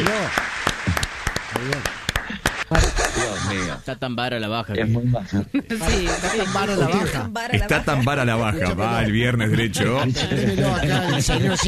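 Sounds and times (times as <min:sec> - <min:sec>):
small audience clapping: 0:00.0 - 0:03.4
speech: 0:01.5 - 0:02.0, 0:03.5 - 0:11.6
laughter: 0:02.3 - 0:04.1, 0:05.8 - 0:11.6.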